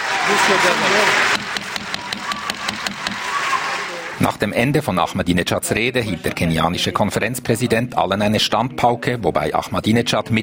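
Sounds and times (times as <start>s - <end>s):
thunderous applause in a conference hall: 0.0s - 4.2s
speech: 0.3s - 1.4s, 4.2s - 10.4s.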